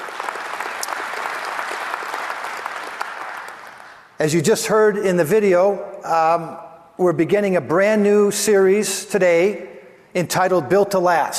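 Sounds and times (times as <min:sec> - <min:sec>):
audience round of applause: 0:00.0 - 0:04.1
speech: 0:04.2 - 0:11.3.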